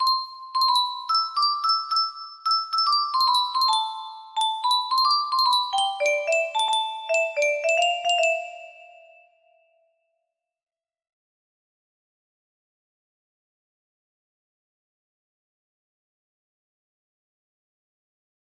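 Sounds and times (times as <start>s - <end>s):
music box: 0.0s - 9.6s.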